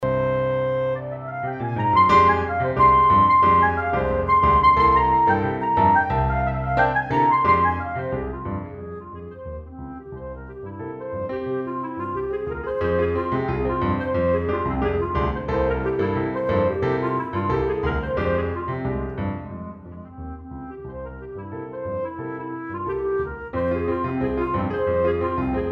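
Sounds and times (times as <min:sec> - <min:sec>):
clarinet: 0:00.0 - 0:25.7
piano: 0:00.0 - 0:25.7.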